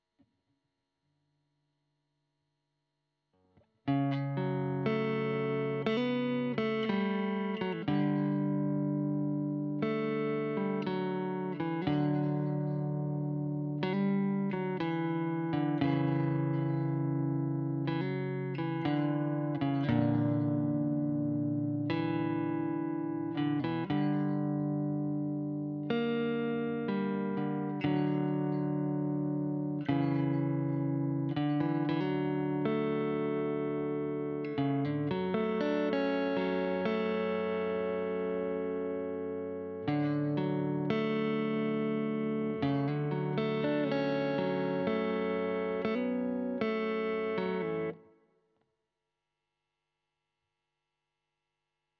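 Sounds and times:
guitar recorded with Royer microphone: 3.4 - 48.3.

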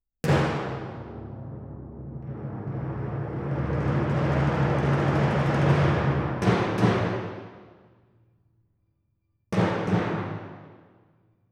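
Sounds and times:
timpani: 0.2 - 7.9, 9.6 - 11.0.

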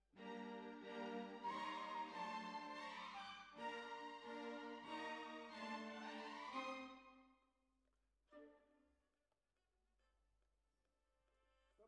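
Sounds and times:
bassoon: 0.2 - 7.2.

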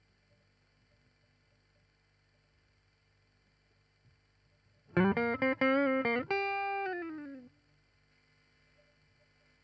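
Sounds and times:
guitar: 4.9 - 7.6.

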